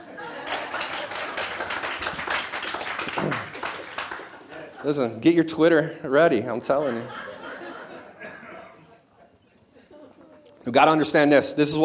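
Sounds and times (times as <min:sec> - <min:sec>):
laughter: 0:00.0 - 0:10.6
audience clapping: 0:00.2 - 0:04.8
speech: 0:04.8 - 0:07.3, 0:10.6 - 0:11.8.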